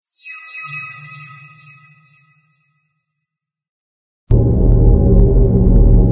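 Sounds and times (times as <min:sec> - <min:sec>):
random tech ambience: 0:04.3 - 0:06.1.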